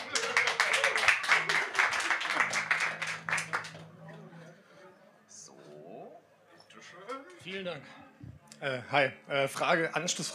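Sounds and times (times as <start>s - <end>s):
audience applause: 0.0s - 4.1s
faint voices murmuring: 0.0s - 10.3s
speech: 7.5s - 8.0s, 8.6s - 10.3s.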